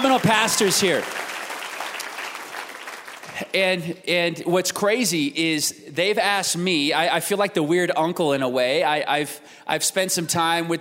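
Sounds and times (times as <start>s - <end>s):
speech: 0.0s - 1.3s, 3.4s - 10.7s
audience round of applause: 0.0s - 3.5s.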